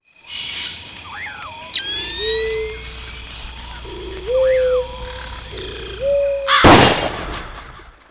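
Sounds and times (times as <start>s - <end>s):
bumper audio jingle: 1.6s - 8.0s.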